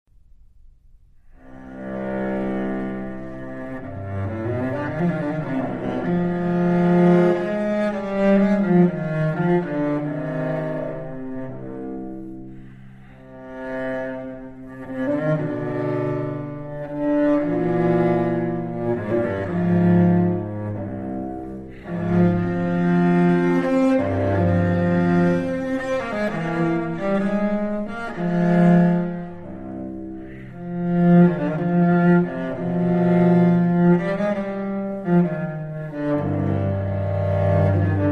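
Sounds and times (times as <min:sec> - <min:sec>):
cello prelude in C minor: 0:01.0 - 0:38.1.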